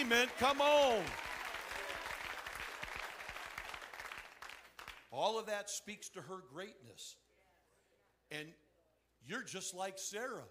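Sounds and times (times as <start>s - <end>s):
speech: 0.0s - 1.2s, 5.1s - 7.2s, 8.3s - 8.6s, 9.2s - 10.5s
audience clapping: 0.0s - 5.2s.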